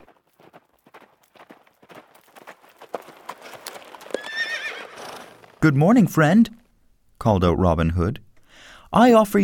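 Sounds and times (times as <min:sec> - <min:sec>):
horse pulling a butcher's wagon out of a forest: 0:00.0 - 0:05.6
horse whinnying: 0:04.0 - 0:05.5
speech: 0:05.6 - 0:06.6, 0:07.2 - 0:08.2, 0:08.9 - 0:09.4.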